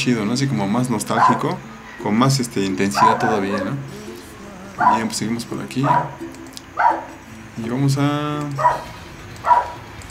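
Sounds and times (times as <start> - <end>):
speech: 0.0 - 4.0, 4.8 - 7.0, 7.6 - 9.6
dog barking: 1.1 - 1.6, 2.9 - 3.9, 4.8 - 6.2, 6.8 - 7.2, 8.6 - 9.8.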